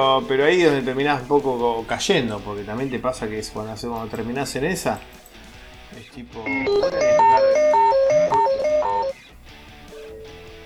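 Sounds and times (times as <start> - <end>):
speech: 0.0 - 5.2, 5.9 - 7.6
phone alarm ringing: 6.5 - 9.3.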